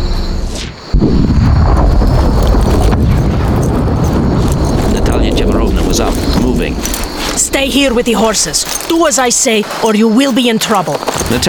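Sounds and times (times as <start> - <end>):
explosions: 0.4 - 7.3
speech: 7.7 - 11.4.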